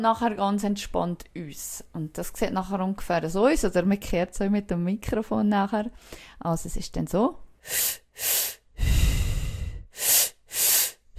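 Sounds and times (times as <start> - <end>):
speech: 0.0 - 8.9
two quick sharp inhales in a breathing exercise: 6.0 - 6.4, 7.6 - 11.1
long rushing exhale in a breathing exercise: 7.6 - 11.1.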